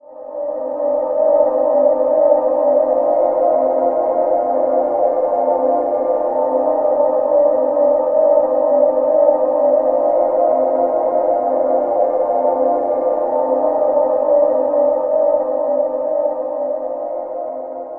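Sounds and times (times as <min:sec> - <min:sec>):
ambient synth pad in C: 0:00.0 - 0:17.9.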